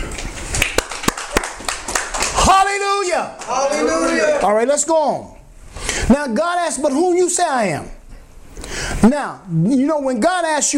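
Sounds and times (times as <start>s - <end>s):
church congregation clapping as an offering to God: 0.0s - 4.3s
speech: 3.1s - 5.4s, 6.0s - 8.0s, 9.0s - 10.7s.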